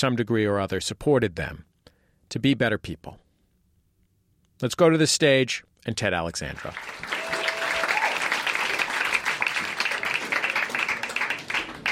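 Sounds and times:
speech: 0.0 - 1.7, 2.3 - 3.2, 4.6 - 7.2
audience applause: 6.6 - 11.9.

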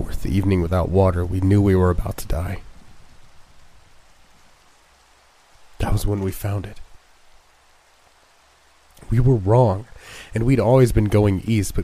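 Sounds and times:
rain falling: 0.0 - 11.8
speech: 0.4 - 2.7, 6.0 - 6.9, 9.0 - 11.8.

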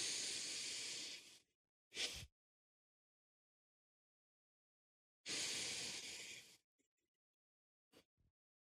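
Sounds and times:
slow nasal inhale and exhale: 0.0 - 2.3, 5.3 - 6.6.

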